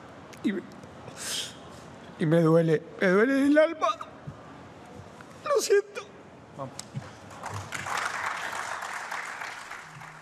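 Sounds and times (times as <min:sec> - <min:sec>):
speech: 0:00.4 - 0:01.5, 0:02.2 - 0:04.1, 0:05.6 - 0:06.8
stadium applause: 0:07.3 - 0:10.2.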